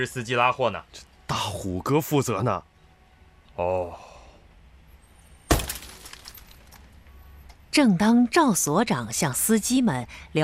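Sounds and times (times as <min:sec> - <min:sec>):
speech: 0:00.0 - 0:02.7, 0:03.6 - 0:04.1, 0:07.7 - 0:10.4
police car window glass being smashed: 0:05.5 - 0:06.8.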